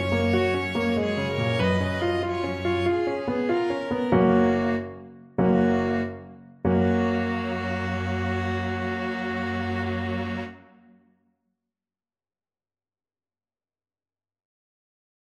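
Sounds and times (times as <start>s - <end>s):
piano quartet playing a scene finale: 0.0s - 10.6s.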